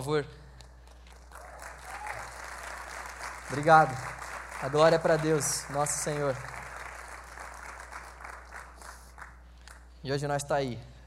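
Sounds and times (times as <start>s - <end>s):
speech: 0.0s - 0.4s, 3.5s - 6.6s, 10.0s - 10.9s
audience applause: 1.2s - 9.4s.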